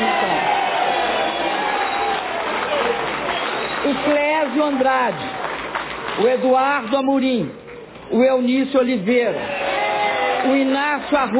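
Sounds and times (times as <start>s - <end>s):
audience applause: 0.0s - 6.2s, 9.4s - 11.3s
speech: 3.9s - 5.4s, 6.2s - 9.6s, 10.4s - 11.3s.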